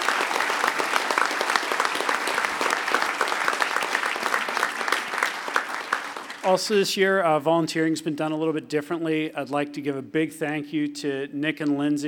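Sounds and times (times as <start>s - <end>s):
audience applause: 0.0s - 6.7s
speech: 6.5s - 12.0s.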